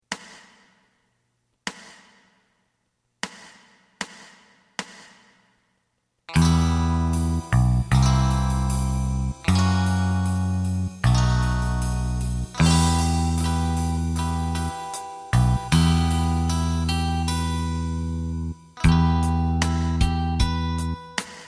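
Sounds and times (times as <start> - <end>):
lead guitar: 6.3 - 21.2.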